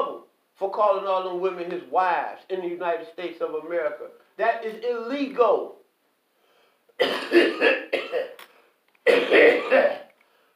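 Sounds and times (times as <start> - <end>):
speech: 0.6 - 5.8, 7.0 - 8.4, 9.0 - 10.0
person coughing while smoking a blunt of mullein herb mixed with marijuana: 7.0 - 8.4, 9.1 - 10.1.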